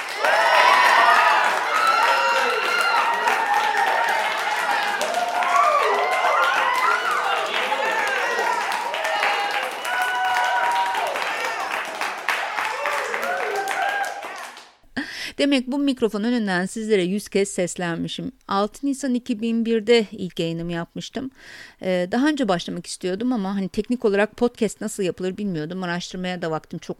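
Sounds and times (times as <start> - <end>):
crowd applauding: 0.0 - 14.8
speech: 15.4 - 26.9.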